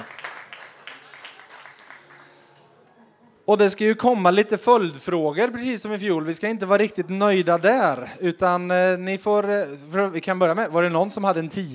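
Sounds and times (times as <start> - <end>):
small audience applause: 0.0 - 2.7
speech: 3.5 - 11.7.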